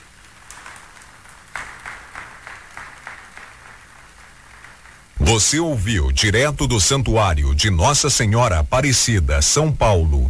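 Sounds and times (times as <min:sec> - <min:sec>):
audience applause: 0:00.0 - 0:07.0
speech: 0:05.3 - 0:10.2.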